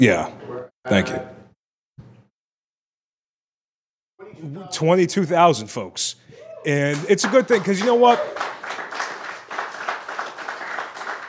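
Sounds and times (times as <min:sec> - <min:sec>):
speech: 0:00.0 - 0:01.3, 0:04.2 - 0:09.1
audience clapping: 0:06.7 - 0:11.2.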